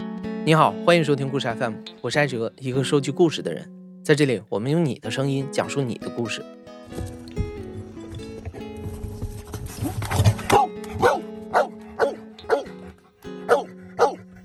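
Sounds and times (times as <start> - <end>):
speech: 0.4 - 7.2
rustling: 6.9 - 11.2
black Labrador search dog barking: 10.4 - 14.4.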